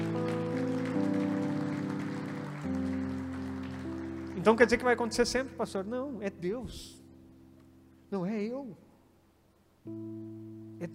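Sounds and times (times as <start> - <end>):
audience applause: 0.0 - 5.1
sustained keyboard chords: 0.0 - 8.9, 9.8 - 10.9
speech: 4.4 - 7.0, 8.1 - 8.8, 9.8 - 10.9.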